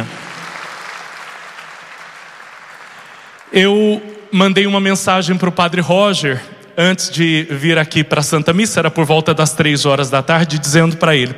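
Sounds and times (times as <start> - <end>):
audience applauding: 0.0 - 4.3
speech: 3.5 - 11.3.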